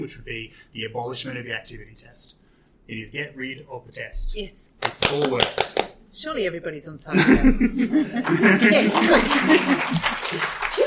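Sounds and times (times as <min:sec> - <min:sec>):
speech: 0:00.0 - 0:10.6
scattered chuckles and voices: 0:07.1 - 0:10.8
audience applause: 0:08.2 - 0:10.8.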